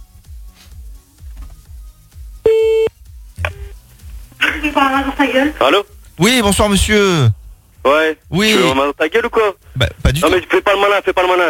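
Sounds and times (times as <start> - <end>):
telephone electronic beeps while a call is placed: 2.5 - 3.8
speech: 4.6 - 11.4.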